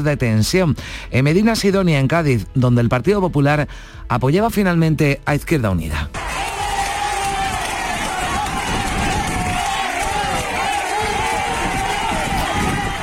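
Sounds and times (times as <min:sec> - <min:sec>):
speech: 0:00.0 - 0:06.2
crowd noise at council investiture session: 0:06.1 - 0:13.0
whoops and cheers: 0:06.2 - 0:13.0.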